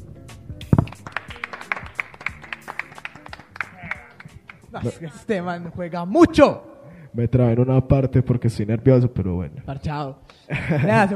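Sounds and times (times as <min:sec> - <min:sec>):
audience applause: 0:00.8 - 0:04.6
speech: 0:04.7 - 0:11.1
laughter: 0:10.5 - 0:11.1.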